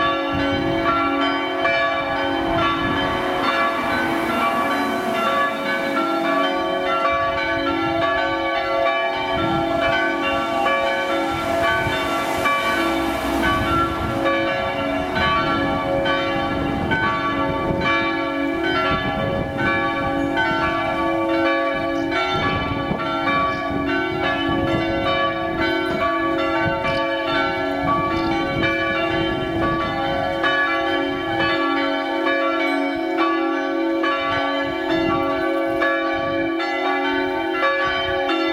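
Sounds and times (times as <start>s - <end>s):
church bells in Presberg: 0.0s - 38.5s.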